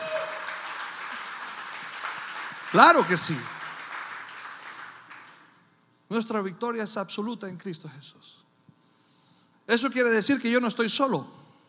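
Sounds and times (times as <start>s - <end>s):
audience applause: 0.0s - 5.6s
speech: 2.7s - 3.6s, 6.1s - 8.5s, 9.7s - 11.4s.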